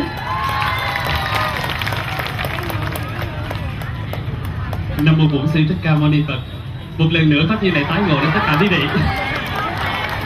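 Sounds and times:
audience cheering: 0.0s - 2.3s, 7.6s - 10.2s
audience applause: 0.0s - 4.8s, 7.9s - 10.2s
speech: 5.0s - 9.3s.

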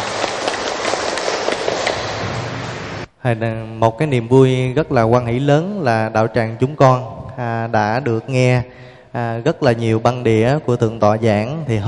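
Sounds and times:
large crowd clapping: 0.0s - 3.1s
speech: 3.2s - 11.8s.

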